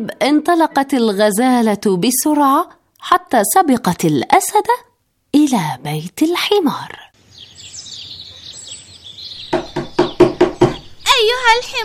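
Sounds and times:
speech: 0:00.0 - 0:07.1, 0:11.3 - 0:11.8
faint chirp: 0:07.1 - 0:11.8
knocking hard on a door: 0:09.4 - 0:11.0.

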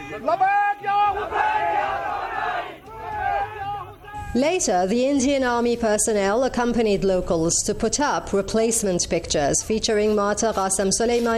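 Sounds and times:
protest crowd chanting slogans: 0:00.0 - 0:04.4
speech: 0:00.1 - 0:01.7, 0:04.3 - 0:11.3.

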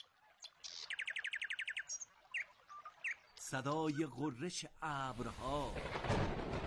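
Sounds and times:
nightingale singing: 0:00.0 - 0:04.3
speech: 0:03.5 - 0:06.5.

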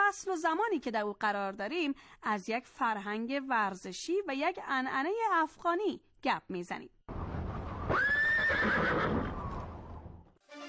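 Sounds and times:
speech: 0:00.1 - 0:07.0
horse neighing in a long high whinny: 0:07.9 - 0:09.7.

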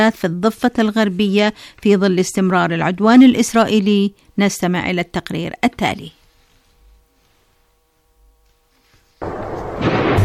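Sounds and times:
speech: 0:00.0 - 0:06.2
gunfire at night: 0:09.2 - 0:10.2.

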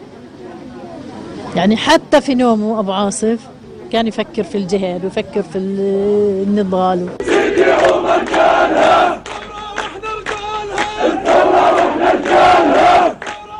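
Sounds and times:
speech: 0:01.6 - 0:09.3
funeral crowd chanting: 0:07.1 - 0:13.5.

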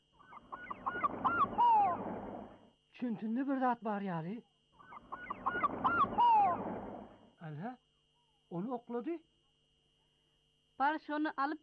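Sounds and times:
goose-like bird honking calls: 0:00.2 - 0:02.2, 0:04.8 - 0:06.8
speech: 0:03.0 - 0:04.5, 0:07.4 - 0:07.8, 0:08.5 - 0:09.3, 0:10.8 - 0:11.6.

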